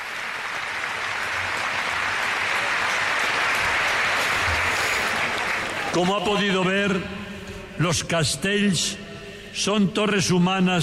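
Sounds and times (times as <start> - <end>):
crowd applause for human tower team: 0.0 - 6.7
speech: 6.0 - 10.8.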